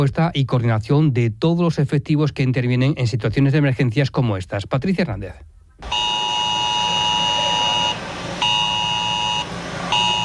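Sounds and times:
speech: 0:00.0 - 0:05.9
emergency alert sounding during a forest fire drill in Alcuéscar: 0:05.8 - 0:10.2.

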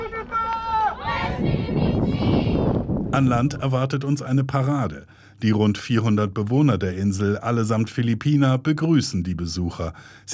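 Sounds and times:
activists cheering: 0:00.0 - 0:02.7
speech: 0:03.2 - 0:10.3.

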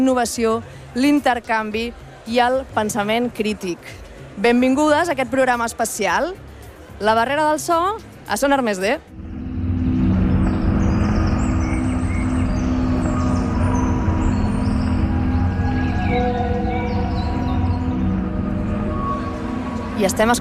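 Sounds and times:
speech: 0:00.0 - 0:09.1, 0:20.0 - 0:20.3
birds singing: 0:09.7 - 0:20.3.

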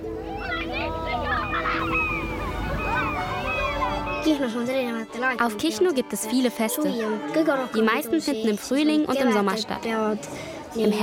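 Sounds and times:
low wash of surf and wind at the shore: 0:00.0 - 0:05.3
seagulls calling over a beach: 0:00.0 - 0:05.9
speech: 0:04.2 - 0:11.0.

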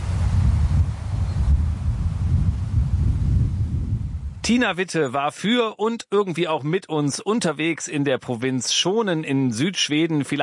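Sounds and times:
wind rushing through grasses: 0:00.0 - 0:04.5
speech: 0:04.5 - 0:10.4.

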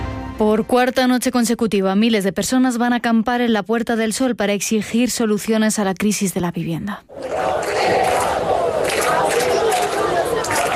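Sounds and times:
speech: 0:00.4 - 0:08.2
protest crowd chanting in a square: 0:07.1 - 0:10.7.

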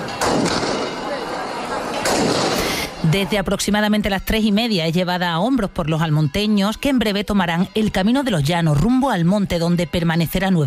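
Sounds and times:
crowd cheering: 0:00.0 - 0:02.1
shotgun salute volleys during a religious procession: 0:00.1 - 0:01.1, 0:02.0 - 0:02.9
speech: 0:03.0 - 0:10.6.

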